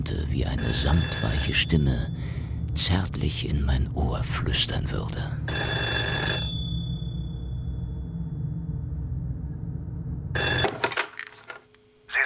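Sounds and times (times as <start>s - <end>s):
speech: 0.0s - 5.9s
low hum: 0.0s - 12.0s
telephone bell ringing: 0.5s - 1.8s, 5.5s - 7.3s, 10.4s - 11.0s.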